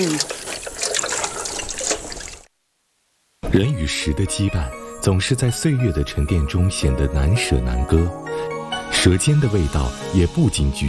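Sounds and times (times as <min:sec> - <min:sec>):
speech: 0:00.0 - 0:00.4, 0:03.5 - 0:10.8
running tap water: 0:00.0 - 0:02.5.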